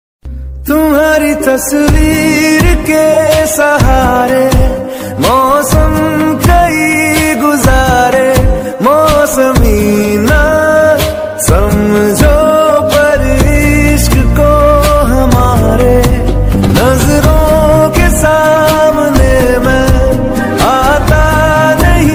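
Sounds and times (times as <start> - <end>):
trending Hindi mobile ringtone music: 0.7 - 22.1.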